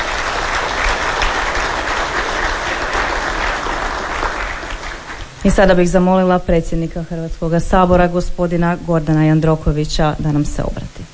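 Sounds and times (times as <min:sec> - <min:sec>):
audience applause in the Croatian Parliament for student quiz winners: 0:00.0 - 0:05.6
speech: 0:05.4 - 0:11.1.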